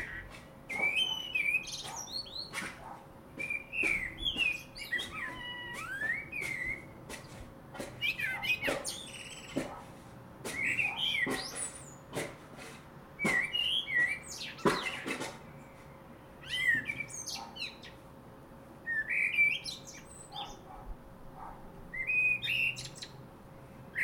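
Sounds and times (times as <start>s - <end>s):
common blackbird singing: 0.0s - 2.7s, 3.4s - 9.8s, 10.5s - 12.1s, 13.2s - 18.0s, 18.9s - 20.7s, 21.9s - 23.2s.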